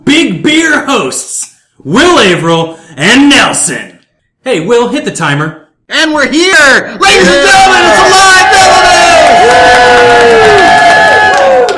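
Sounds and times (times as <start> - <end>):
speech: 0.0 - 8.3, 9.3 - 10.6
raucous live audience applause and cheering: 7.4 - 11.7.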